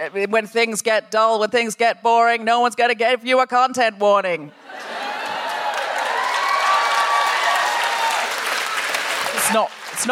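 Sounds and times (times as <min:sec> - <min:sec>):
speech: 0:00.0 - 0:04.9, 0:09.4 - 0:10.1
laughter: 0:04.5 - 0:06.2
crowd applauding: 0:04.7 - 0:10.1
faint whoops and cheers: 0:05.0 - 0:09.7.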